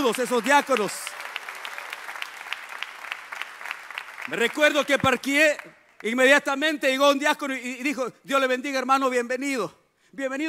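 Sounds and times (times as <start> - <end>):
audience applause: 0.0 - 5.6
speech: 0.1 - 1.2, 4.3 - 10.4.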